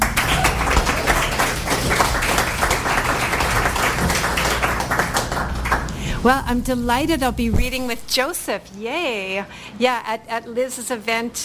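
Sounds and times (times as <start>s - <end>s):
audience applause at a reading event: 0.0s - 6.0s
speech: 6.2s - 11.4s.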